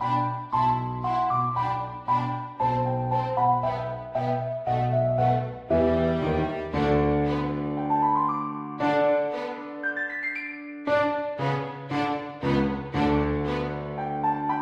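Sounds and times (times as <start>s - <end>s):
piano in a backing track: 0.0s - 14.5s
violin in a backing track: 0.0s - 14.5s.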